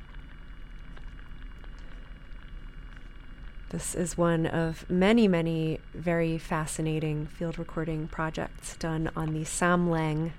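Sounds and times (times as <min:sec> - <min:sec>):
underwater crackle of seaweed and sea urchins: 0:00.0 - 0:03.6
speech: 0:03.7 - 0:10.3.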